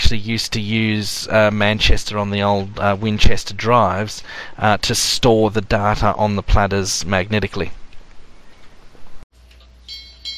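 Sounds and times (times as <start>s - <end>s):
speech: 0.1s - 7.8s
ship's clock bell chiming: 9.9s - 10.3s.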